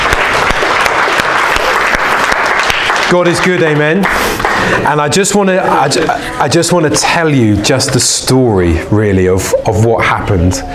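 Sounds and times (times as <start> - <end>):
round of applause: 0.0 - 5.2
speech: 3.1 - 10.7.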